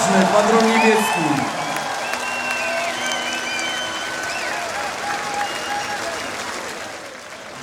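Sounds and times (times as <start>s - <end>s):
speech: 0.0s - 1.6s
concert crowd applause: 0.0s - 7.6s
faint cheers: 0.0s - 7.6s
whistles: 2.0s - 4.6s, 5.2s - 6.4s.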